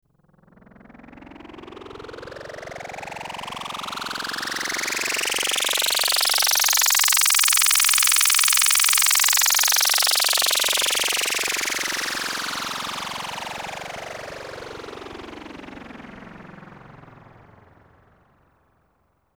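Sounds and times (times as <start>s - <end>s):
EMS VCS3 synthesizer effects: 2.8s - 13.9s.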